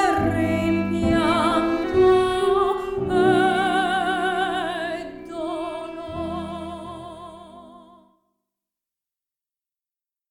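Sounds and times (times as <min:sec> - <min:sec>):
soprano singing: 0:00.0 - 0:08.2.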